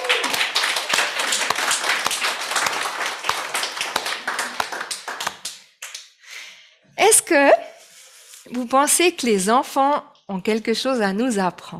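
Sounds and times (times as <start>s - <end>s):
audience applauding the children: 0.0s - 6.0s
speech: 7.1s - 7.6s, 8.5s - 11.7s.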